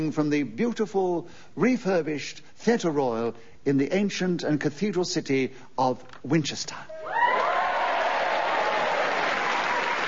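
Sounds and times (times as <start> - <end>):
speech: 0.0 - 7.3
theatre audience applause: 7.0 - 10.0.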